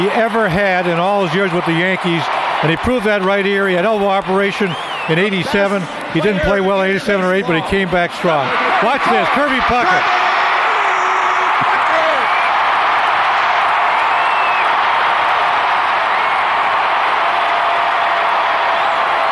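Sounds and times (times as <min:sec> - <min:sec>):
speech: 0:00.0 - 0:10.2
stadium crowd ovation: 0:00.0 - 0:19.3.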